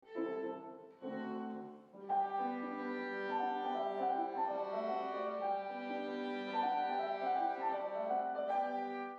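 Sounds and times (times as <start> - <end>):
bagpipe: 1.0 - 9.1.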